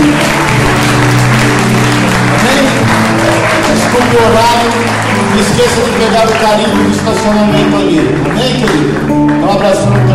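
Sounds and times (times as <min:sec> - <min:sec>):
audience applause: 0:00.0 - 0:10.1
speech: 0:05.5 - 0:10.1.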